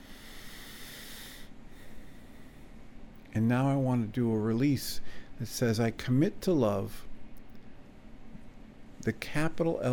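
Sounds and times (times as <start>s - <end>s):
person breathing slowly during a reflective writing exercise: 0.0s - 2.8s, 5.0s - 5.4s
speech: 3.4s - 7.1s, 9.0s - 9.9s.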